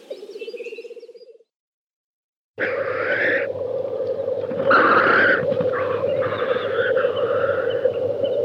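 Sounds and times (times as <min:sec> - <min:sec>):
black grouse bubbling lek display: 0:02.6 - 0:08.4.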